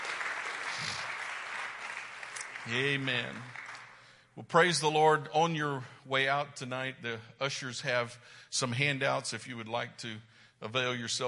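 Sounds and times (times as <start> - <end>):
audience clapping: 0.0 - 4.2
speech: 2.6 - 3.6, 4.4 - 11.2.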